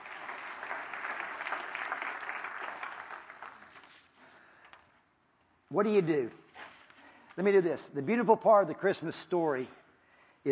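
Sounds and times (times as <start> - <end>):
audience clapping: 0.0 - 4.3
speech: 5.7 - 6.4, 7.4 - 9.8.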